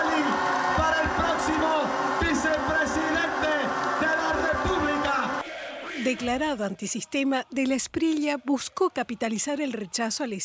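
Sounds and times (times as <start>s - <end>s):
audience applause and cheering: 0.0s - 6.4s
speech: 6.0s - 10.4s.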